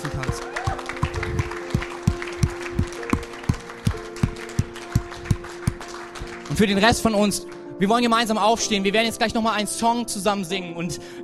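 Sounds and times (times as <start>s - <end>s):
audience clapping in rhythm: 0.0s - 7.6s
speech: 6.6s - 11.2s.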